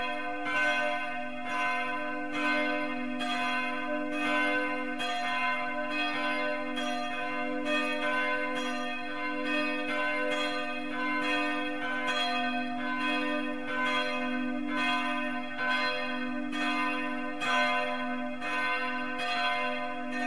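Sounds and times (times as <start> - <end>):
bells ringing in Marienrode: 0.0 - 20.2.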